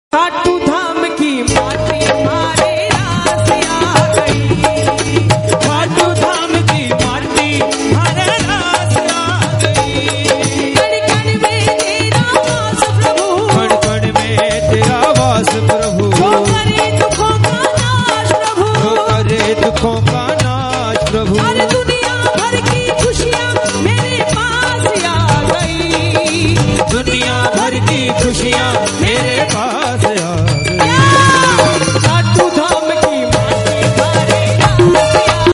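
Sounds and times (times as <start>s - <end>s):
Hindu devotional bhajan song: 0.1s - 35.5s.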